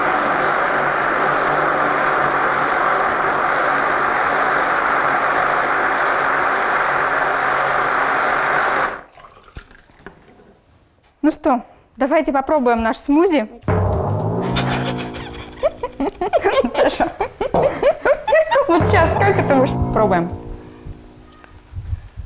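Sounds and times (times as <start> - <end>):
blender blending smoothie ingredients: 0.0 - 9.1
speech: 11.4 - 13.6, 16.0 - 17.9, 18.8 - 20.4
laughter: 14.6 - 19.4.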